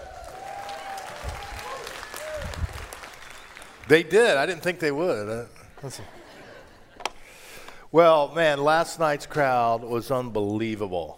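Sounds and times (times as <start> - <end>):
faint whoops and cheers: 0.0 - 3.6
crowd applauding for the band: 0.0 - 4.6
speech: 3.9 - 6.2, 7.9 - 11.1
laughter: 5.6 - 7.2.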